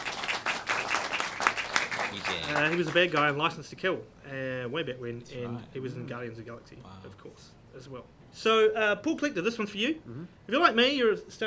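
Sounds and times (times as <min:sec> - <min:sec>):
round of applause: 0:00.0 - 0:03.4
speech: 0:02.2 - 0:11.4.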